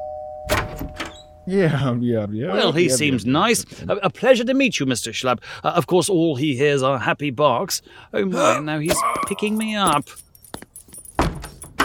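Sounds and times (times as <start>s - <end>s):
doorbell ringing: 0.0s - 1.5s
speech: 1.5s - 10.2s.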